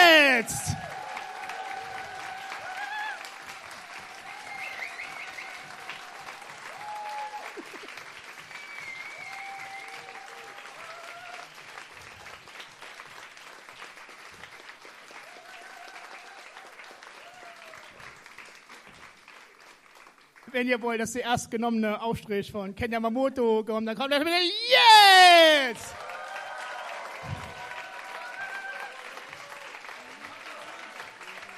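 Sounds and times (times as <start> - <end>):
cheering: 0.0 - 13.0, 14.8 - 18.4, 24.5 - 31.5
audience clapping: 0.0 - 20.7, 24.5 - 31.5
high whistles: 4.4 - 5.7, 8.5 - 10.0
speech: 20.6 - 26.0.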